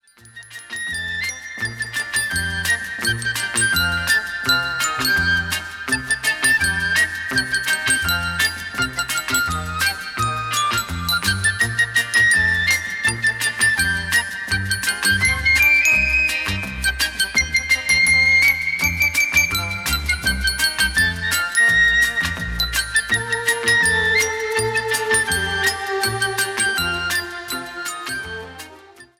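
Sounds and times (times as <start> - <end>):
orchestra playing: 1.6 - 29.1
chorus singing: 23.1 - 28.6.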